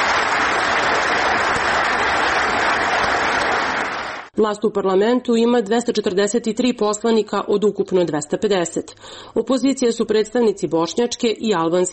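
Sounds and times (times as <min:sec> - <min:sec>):
Serbian parliament members applauding: 0:00.0 - 0:04.3
speech: 0:04.4 - 0:11.9.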